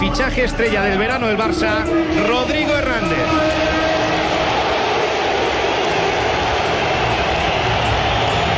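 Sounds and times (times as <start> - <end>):
speech: 0.1 - 3.7
stadium crowd ovation: 1.8 - 8.5.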